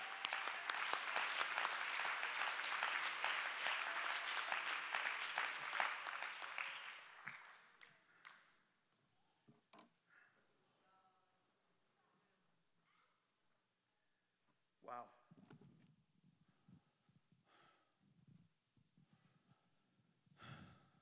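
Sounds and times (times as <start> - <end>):
audience clapping: 0.0 - 8.6.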